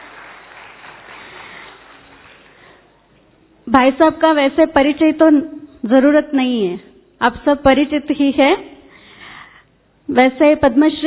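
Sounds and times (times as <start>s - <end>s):
audience applauding to welcome an honoured guest: 0.0s - 3.0s
speech: 3.7s - 8.7s, 10.1s - 11.0s.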